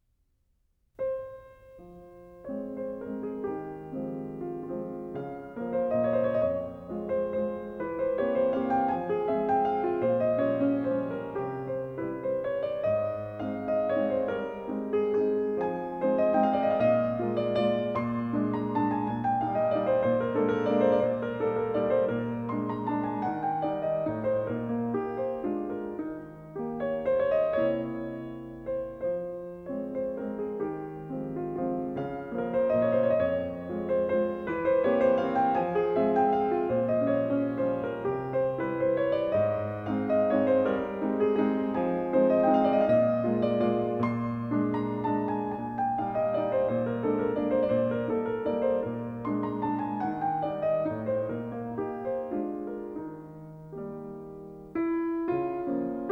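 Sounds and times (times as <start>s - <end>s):
waltz in F minor and A flat: 3.2s - 56.1s.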